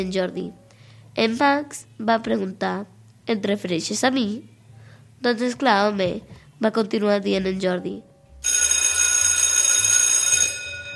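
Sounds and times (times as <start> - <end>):
speech: 0.0 - 0.6, 1.2 - 4.5, 5.2 - 8.6
school bell ringing: 8.4 - 10.9.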